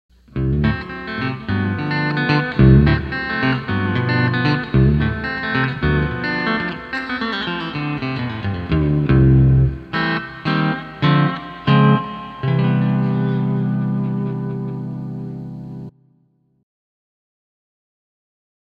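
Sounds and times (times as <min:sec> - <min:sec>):
C6th fingerstyle guitar: 0:00.1 - 0:16.1.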